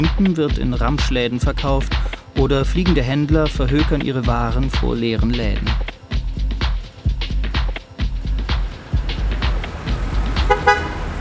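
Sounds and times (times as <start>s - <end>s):
speech: 0.0s - 6.0s
road traffic: 6.9s - 11.1s
car horns: 10.0s - 11.1s.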